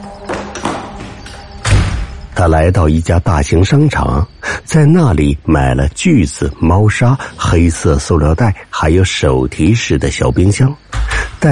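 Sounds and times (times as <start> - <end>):
door opening and closing: 0.0 - 2.4, 10.9 - 11.5
speech: 2.4 - 11.5.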